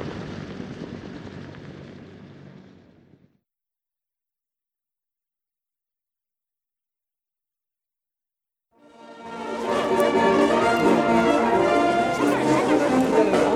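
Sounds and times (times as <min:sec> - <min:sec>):
soundscape: 0:08.8 - 0:13.5.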